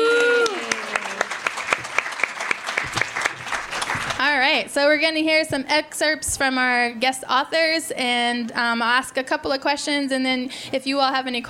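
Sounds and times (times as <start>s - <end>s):
small audience clapping: 0.0s - 4.4s
speech: 4.6s - 11.4s.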